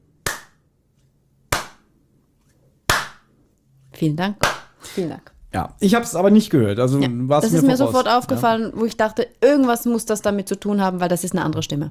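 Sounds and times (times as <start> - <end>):
hand clapping: 0.2 - 0.6, 1.5 - 1.9, 2.9 - 3.3, 4.4 - 4.8
speech: 4.0 - 11.8.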